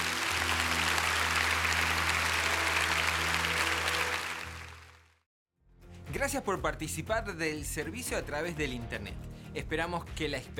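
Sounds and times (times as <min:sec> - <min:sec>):
audience applauding: 0:00.0 - 0:05.2
speech: 0:06.2 - 0:10.5.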